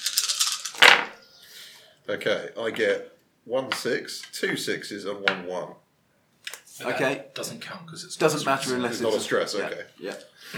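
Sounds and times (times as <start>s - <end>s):
dice rattling in a cup: 0.0s - 1.0s
speech: 2.1s - 5.8s, 6.8s - 10.5s.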